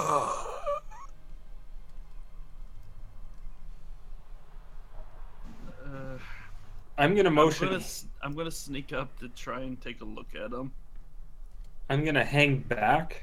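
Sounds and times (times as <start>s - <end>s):
game master voicing a low groan: 0.0s - 1.1s, 5.5s - 6.6s
speech: 7.0s - 10.8s, 11.9s - 13.2s.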